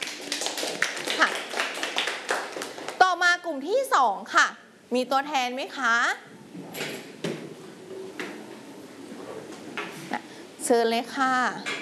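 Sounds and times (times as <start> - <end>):
students clapping for a group in a classroom: 0.0 - 3.0
speech: 3.5 - 6.3, 10.7 - 11.8.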